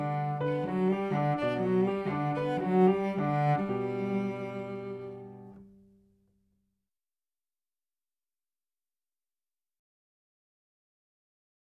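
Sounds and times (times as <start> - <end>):
cello playing a musette: 0.0 - 6.0.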